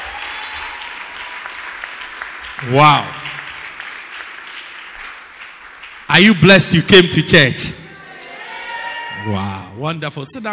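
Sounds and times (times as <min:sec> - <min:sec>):
audience applause: 0:00.0 - 0:07.0
speech: 0:02.6 - 0:03.2, 0:06.2 - 0:07.8, 0:09.2 - 0:10.5.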